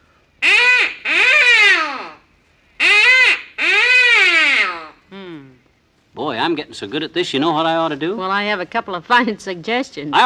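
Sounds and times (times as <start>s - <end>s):
duck call blown as comeback call: 0.4s - 5.0s
speech: 6.5s - 10.2s.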